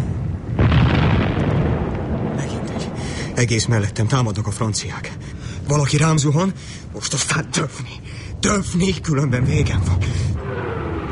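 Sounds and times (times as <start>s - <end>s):
grenade explosion on a battlefield: 0.6s - 3.4s
speech: 3.4s - 10.5s.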